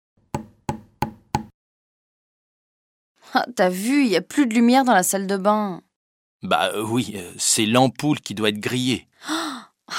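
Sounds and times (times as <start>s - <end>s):
hammer hitting nail into a wall: 0.3s - 1.6s
speech: 3.3s - 9.9s.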